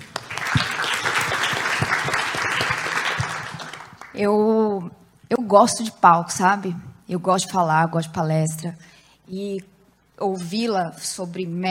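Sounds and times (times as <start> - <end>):
crowd applause: 0.0 - 4.2
speech: 4.2 - 11.7.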